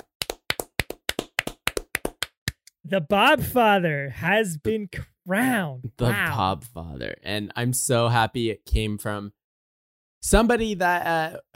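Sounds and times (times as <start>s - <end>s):
hand clapping: 0.0s - 2.8s
speech: 2.9s - 9.4s, 10.2s - 11.5s.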